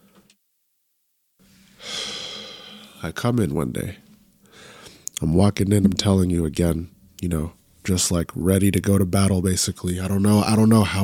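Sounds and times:
nose blowing: 1.4 - 3.0
speech: 3.0 - 4.0, 5.2 - 11.0.

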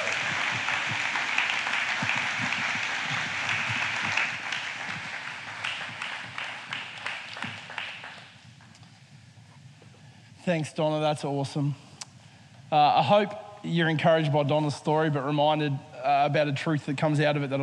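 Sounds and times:
crowd applause: 0.0 - 8.4
speech: 10.5 - 11.8, 12.7 - 17.6.

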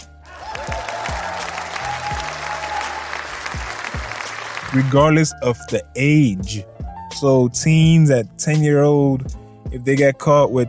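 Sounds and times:
round of applause: 0.0 - 5.1
speech: 4.7 - 10.6.

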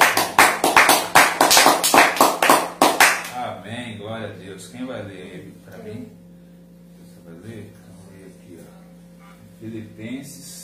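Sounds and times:
audience applause: 0.0 - 3.3
speech: 4.1 - 6.2, 7.3 - 7.8, 9.6 - 10.6.

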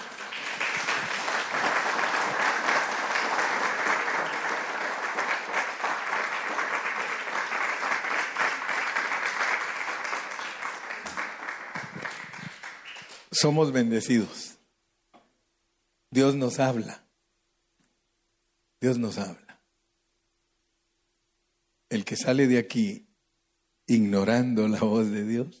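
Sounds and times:
audience clapping: 0.0 - 13.5
speech: 13.4 - 14.4, 16.2 - 17.0, 18.8 - 19.4, 22.0 - 23.1, 23.9 - 25.5.

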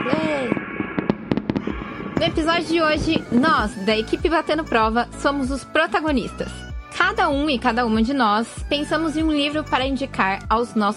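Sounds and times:
fireworks sound effect: 0.0 - 4.4
speech: 2.2 - 10.9.

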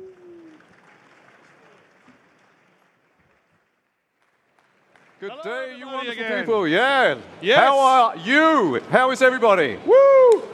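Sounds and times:
audience applause for the hosts at a VentureBeat live event: 0.0 - 5.8
speech: 5.2 - 10.5.

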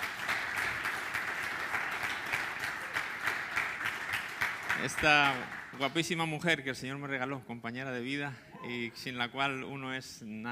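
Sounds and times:
audience applause: 0.0 - 6.2
speech: 4.8 - 10.5.

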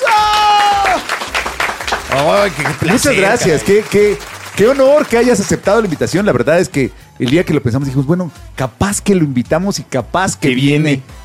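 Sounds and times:
applause: 0.0 - 6.3
speech: 2.1 - 11.2.

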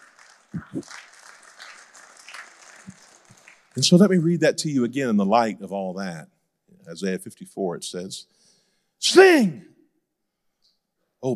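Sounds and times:
crowd clapping: 0.0 - 4.3
speech: 0.5 - 1.1, 3.8 - 8.4, 9.0 - 9.7.

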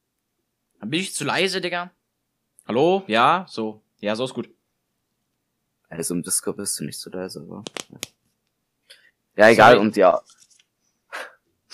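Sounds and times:
speech: 0.8 - 2.0, 2.7 - 4.6, 5.9 - 8.2, 9.4 - 10.4
finger knuckles cracking: 7.6 - 8.2.

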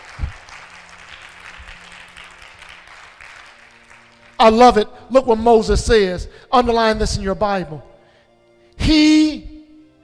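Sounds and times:
audience applause: 0.0 - 4.4
speech: 4.4 - 7.9, 8.9 - 9.4.

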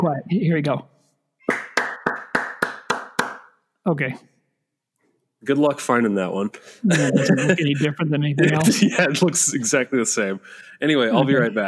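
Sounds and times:
speech: 0.0 - 0.9, 3.9 - 4.3, 5.4 - 11.6
hand claps: 1.4 - 3.6
laughter: 6.7 - 11.6.

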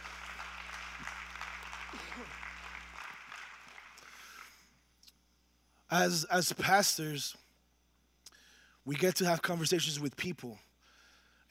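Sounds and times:
audience applauding: 0.0 - 4.6
speech: 5.9 - 7.4, 8.8 - 10.7.

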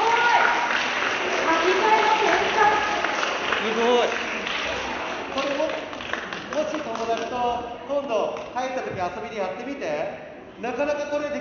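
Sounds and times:
audience applause: 0.0 - 7.5
speech: 7.6 - 11.3.

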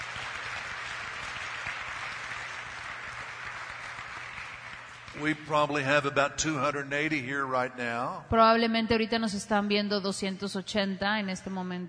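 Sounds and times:
audience applause: 0.0 - 6.2
speech: 5.2 - 11.8.

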